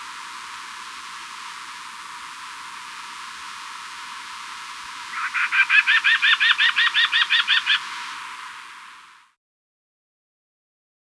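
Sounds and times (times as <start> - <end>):
Crescent-faced antpitta calling in Ecuador: 4.9 - 9.1.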